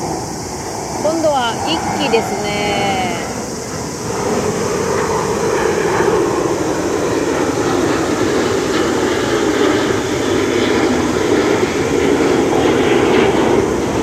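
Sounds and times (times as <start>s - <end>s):
military aircraft flying overhead: 0.0s - 14.0s
speech: 1.2s - 3.2s.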